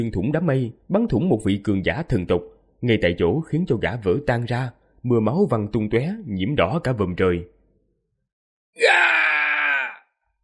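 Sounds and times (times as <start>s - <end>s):
speech: 0.0s - 7.5s, 8.8s - 9.3s
dying man screaming in agony: 8.8s - 10.1s.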